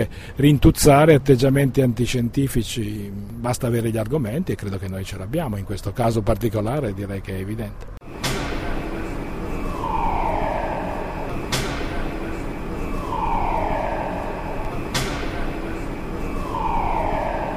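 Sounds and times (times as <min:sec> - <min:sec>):
speech: 0:00.0 - 0:08.0
warning alarm signal at the Atlas construction site: 0:08.0 - 0:17.5.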